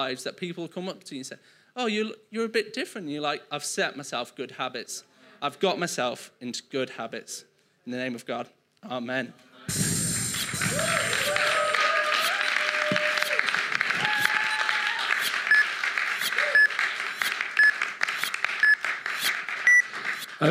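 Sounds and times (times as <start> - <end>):
speech: 0.0 - 9.8
church audience applause: 10.4 - 20.4
whoops and cheers: 10.6 - 15.3, 16.2 - 16.8.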